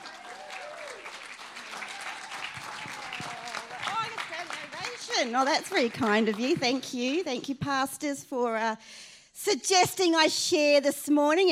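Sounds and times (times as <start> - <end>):
church congregation applauding to welcome a guest speaker: 0.0 - 6.5
speech: 5.2 - 11.4.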